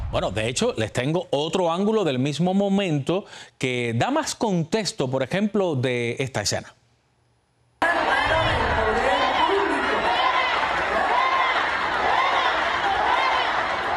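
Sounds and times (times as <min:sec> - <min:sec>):
speech: 0:00.1 - 0:06.8
crowd shouting at protester with megaphone: 0:07.8 - 0:13.9.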